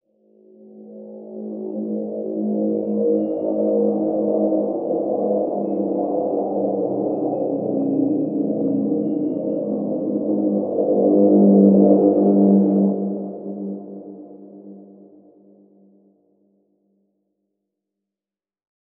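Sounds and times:
synth pad: 0.7 - 15.6.

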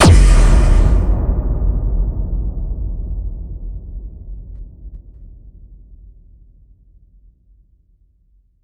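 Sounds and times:
bass drum FX kicks: 0.0 - 6.0.

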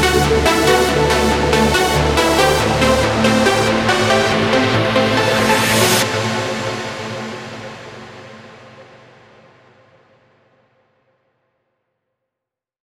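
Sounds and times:
complete music mix in E minor: 0.0 - 8.2.

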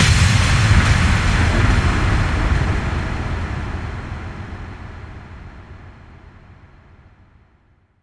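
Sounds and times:
bass drum FX kicks: 0.0 - 6.4.

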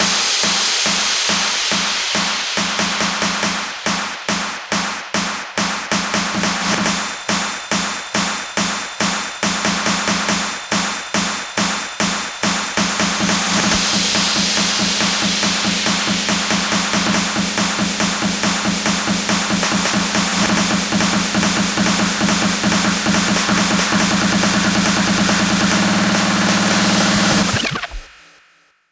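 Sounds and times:
Hands Up and trance fills: 0.0 - 28.4.

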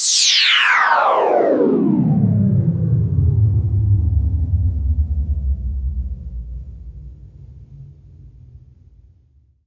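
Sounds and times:
downward sweep effect: 0.0 - 7.1.

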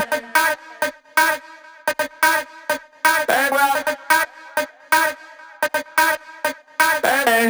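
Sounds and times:
house music loop at 128 BPM: 0.0 - 7.4.

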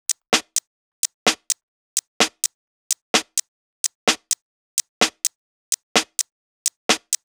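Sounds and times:
drum kit at 128 BPM: 0.0 - 1.6, 2.2 - 3.4, 4.1 - 5.3, 6.0 - 7.3.

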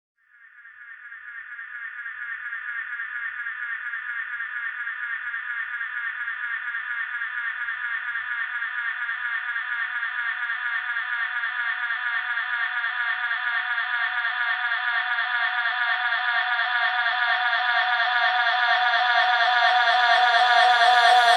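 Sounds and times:
reverb atmospheres: 1.3 - 21.3
FX vocals: 15.3 - 21.3.

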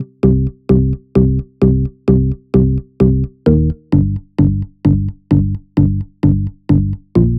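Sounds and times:
bassline: 0.0 - 7.3.

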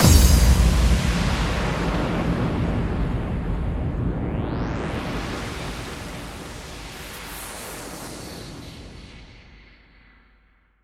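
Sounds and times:
bass drum FX kicks: 0.0 - 4.8.

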